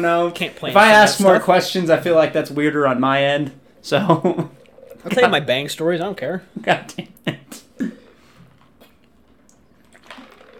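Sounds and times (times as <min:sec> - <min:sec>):
speech: 0:00.0 - 0:07.9
person sipping a drink: 0:04.5 - 0:05.1, 0:07.6 - 0:10.5.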